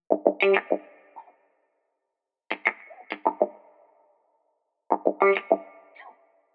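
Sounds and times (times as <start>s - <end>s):
staccato guitar: 0.1s - 1.4s, 2.5s - 3.6s, 4.9s - 6.2s.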